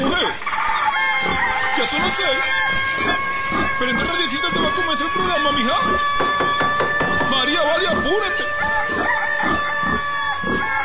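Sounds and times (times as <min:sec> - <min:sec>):
rooster crowing at dawn: 0:00.4 - 0:10.8
speech: 0:05.0 - 0:06.5, 0:07.4 - 0:09.6.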